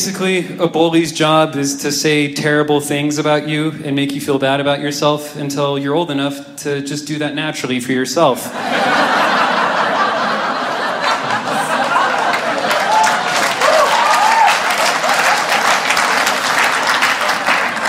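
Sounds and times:
speech: 0:00.0 - 0:09.2
crowd applause: 0:08.6 - 0:17.8
scattered chuckles and cheers: 0:10.7 - 0:15.6.

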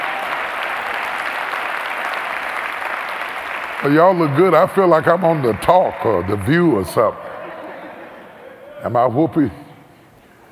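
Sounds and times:
audience applause: 0:00.0 - 0:07.3
speech: 0:03.8 - 0:07.3, 0:08.8 - 0:09.6
laughter: 0:06.2 - 0:08.8.

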